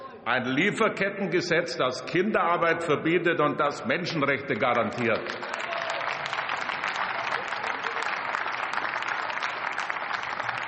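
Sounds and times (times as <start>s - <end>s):
speech: 0.2s - 5.6s
parliamentary applause: 4.6s - 10.6s.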